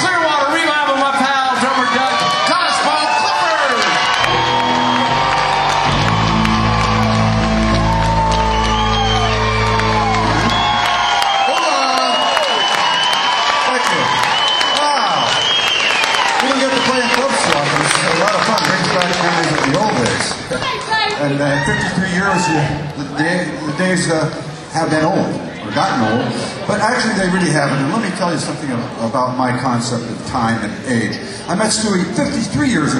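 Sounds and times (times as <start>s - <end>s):
crowd at a Nashville concert cheering and applauding a drummer's introduction: 0.1s - 23.0s
speech: 23.9s - 32.9s.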